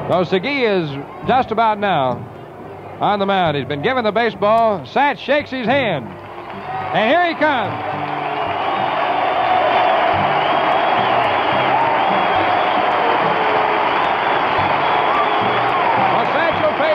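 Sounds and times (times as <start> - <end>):
speech: 0.1 - 2.4, 3.0 - 7.9
large stadium crowd standing ovation: 5.7 - 16.9.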